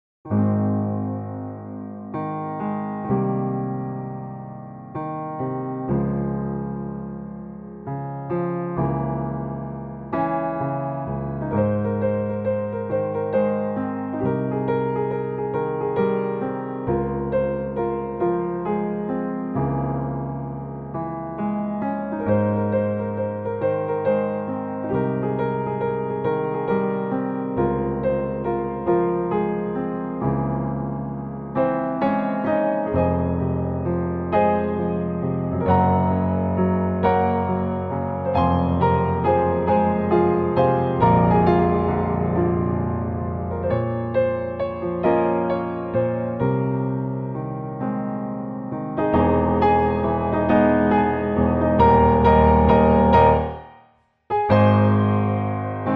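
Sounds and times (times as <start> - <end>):
piano cover: 0.2 - 55.9.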